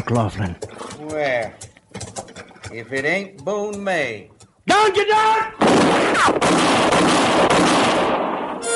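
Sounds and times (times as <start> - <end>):
speech: 0.1 - 1.7, 2.7 - 8.4
gunfire exchange in a shootout in a moonlit clearing: 5.6 - 8.6.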